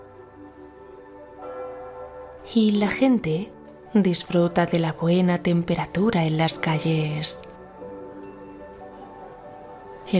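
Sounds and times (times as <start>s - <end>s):
church bells ringing in a Mediterranean town: 1.4s - 5.2s
speech: 2.5s - 7.5s.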